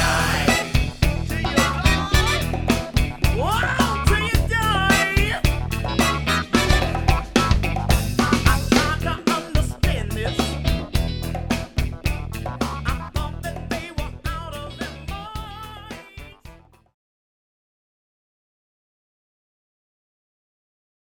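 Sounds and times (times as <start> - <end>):
variety band playing: 0.0 - 16.8.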